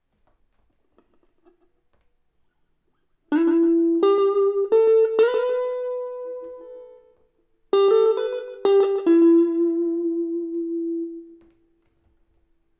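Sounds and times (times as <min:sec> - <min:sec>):
electric guitar: 0:03.3 - 0:12.2.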